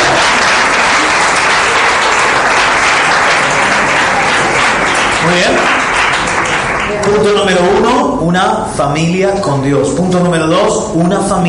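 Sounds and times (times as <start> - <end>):
audience applause: 0.0 - 7.8
speech: 7.1 - 11.4.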